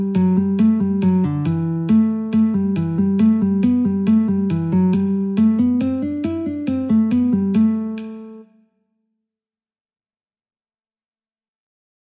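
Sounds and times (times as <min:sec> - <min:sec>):
guitar: 0:00.0 - 0:08.6.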